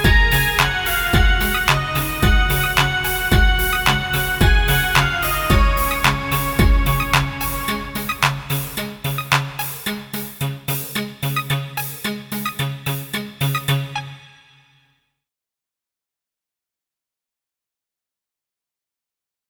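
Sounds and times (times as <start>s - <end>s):
karaoke backing track: 0.0s - 14.1s.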